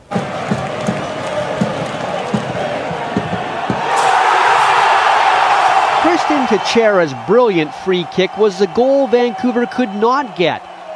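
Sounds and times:
rhythmic low thumps: 0.0 - 3.9
boisterous stadium crowd roaring: 0.0 - 10.9
speech: 6.3 - 10.7.

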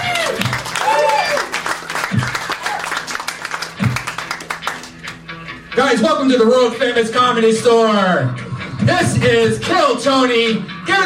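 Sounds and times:
comedy club audience clapping for a comedian: 0.0 - 5.3
speech: 5.8 - 11.0.

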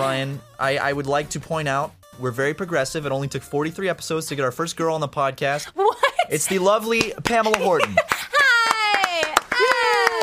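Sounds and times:
speech: 0.0 - 8.2
laughter: 5.8 - 10.2
person clapping: 7.0 - 10.2.

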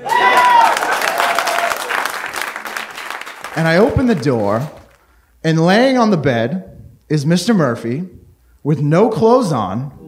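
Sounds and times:
whistle or cheer: 0.0 - 1.9
crowd applause: 0.0 - 5.0
speech: 3.6 - 4.8, 5.4 - 10.0.

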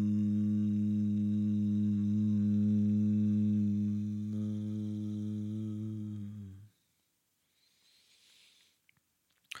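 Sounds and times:
meditative humming chant: 0.0 - 6.7
soft breath: 5.8 - 8.9.

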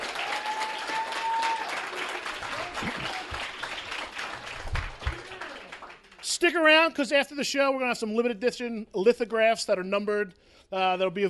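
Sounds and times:
audience clapping for level check: 0.0 - 6.5
speech: 6.4 - 11.2.

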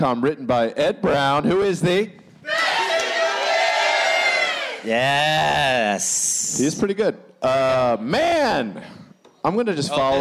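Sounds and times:
speech: 0.0 - 2.6, 4.8 - 10.1
audience yelling in unison: 2.4 - 5.0.

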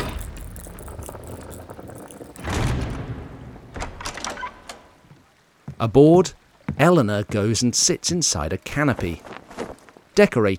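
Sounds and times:
gate opening onto a jetty shut and bolted from inside a tower: 2.4 - 4.9
speech: 5.8 - 9.4, 10.2 - 10.5.

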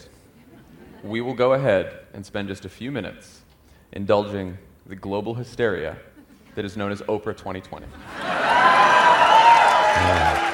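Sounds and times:
speech: 1.0 - 8.6, 10.0 - 10.5
audience applauding: 8.1 - 10.5.

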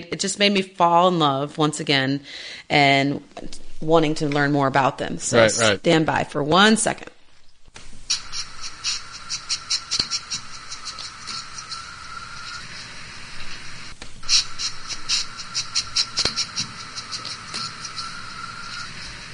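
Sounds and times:
speech: 0.0 - 7.1
pangolin sniffing around his new enclosure: 8.0 - 19.3.

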